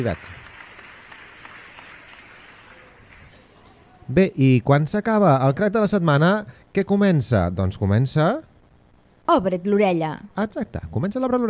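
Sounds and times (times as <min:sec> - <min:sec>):
speech: 0:00.0 - 0:00.4, 0:04.1 - 0:08.5, 0:09.3 - 0:11.4
audience applause: 0:00.0 - 0:03.6.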